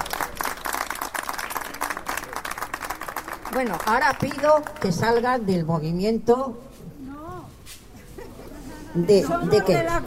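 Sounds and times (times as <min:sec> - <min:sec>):
crowd applauding: 0:00.0 - 0:05.0
speech: 0:03.6 - 0:06.7, 0:09.0 - 0:10.0.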